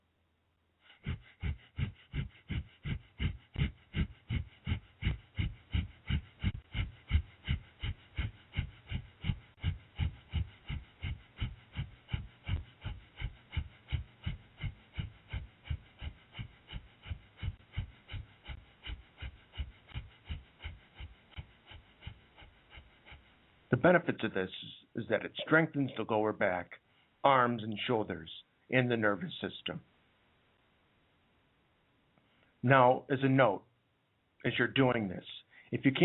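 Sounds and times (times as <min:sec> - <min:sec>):
breath of fire rapid nasal breathing during a yoga pose: 0:00.8 - 0:28.4, 0:35.4 - 0:36.0
speech: 0:23.7 - 0:29.9, 0:32.6 - 0:33.7, 0:34.4 - 0:36.0.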